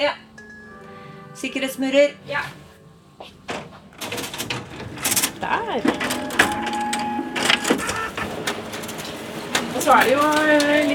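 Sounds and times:
speech: 0.0 - 0.2, 1.4 - 2.6, 5.4 - 6.7, 9.8 - 10.9
paper feed clicks and clacks: 4.0 - 10.9
printer whirring and humming: 4.4 - 10.9.

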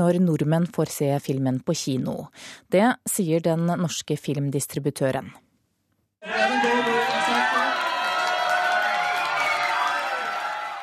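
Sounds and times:
speech: 0.0 - 5.4
premiere crowd cheering and shouting: 6.2 - 10.8.

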